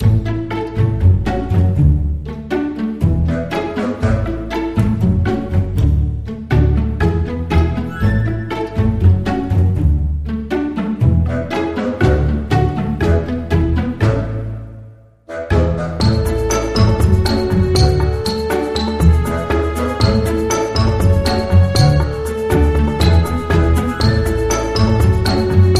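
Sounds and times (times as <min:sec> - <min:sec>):
funny music: 0:00.0 - 0:25.7.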